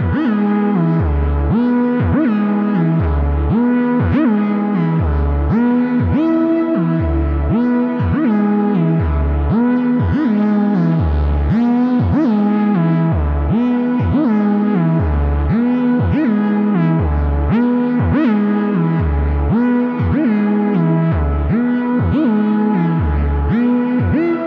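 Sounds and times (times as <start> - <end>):
sequenced synth: 0.0 - 24.4.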